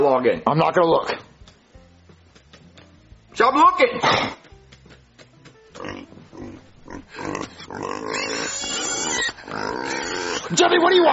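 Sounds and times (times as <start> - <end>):
speech: 0.0 - 1.3, 3.4 - 4.4, 10.5 - 11.1
pigs oinking and grunting: 5.7 - 10.6.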